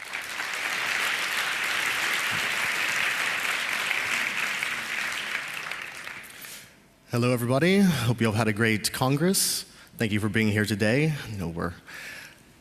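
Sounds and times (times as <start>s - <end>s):
audience applause: 0.0s - 6.6s
speech: 7.1s - 12.1s.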